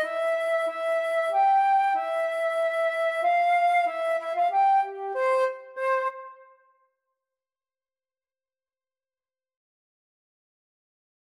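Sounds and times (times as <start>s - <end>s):
flute duet: 0.0s - 6.6s.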